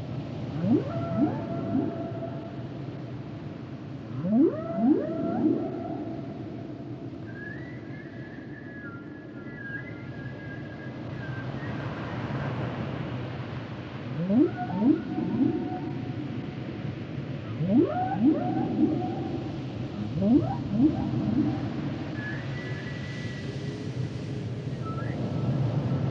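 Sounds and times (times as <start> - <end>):
dolphins: 0.3 - 12.6, 14.0 - 25.9
whale songs: 0.4 - 11.8, 14.0 - 25.5.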